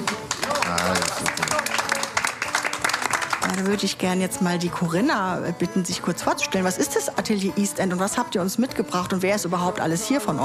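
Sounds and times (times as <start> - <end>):
audience applause: 0.0 - 3.9
speech: 3.6 - 10.4.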